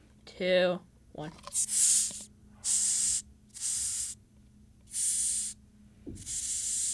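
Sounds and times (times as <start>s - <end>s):
low steady hum: 0.0s - 6.9s
speech: 0.4s - 2.0s
large bug hissing into microphone: 1.5s - 4.2s, 4.9s - 5.6s, 6.2s - 6.9s.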